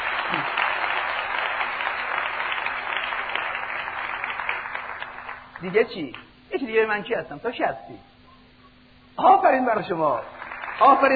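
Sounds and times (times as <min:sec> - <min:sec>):
audience applause: 0:00.0 - 0:05.6, 0:10.3 - 0:11.1
speech: 0:05.6 - 0:08.1, 0:09.2 - 0:11.1.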